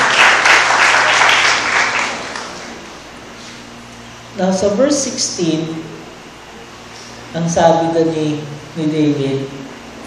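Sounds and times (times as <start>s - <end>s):
church congregation applause during a sermon: 0.0s - 2.8s
speech: 4.4s - 5.9s, 7.3s - 10.0s.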